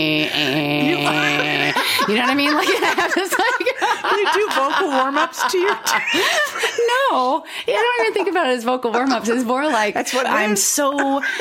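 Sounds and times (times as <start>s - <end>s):
voice imitating electric toothbrush buzz: 0.0s - 1.8s
speech: 0.0s - 11.3s
laughter: 0.7s - 11.3s.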